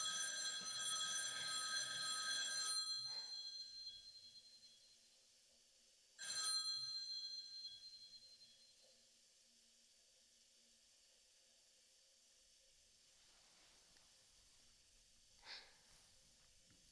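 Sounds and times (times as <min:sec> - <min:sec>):
shrill telephone bell ringing frantically: 0:00.0 - 0:04.8, 0:06.2 - 0:08.6.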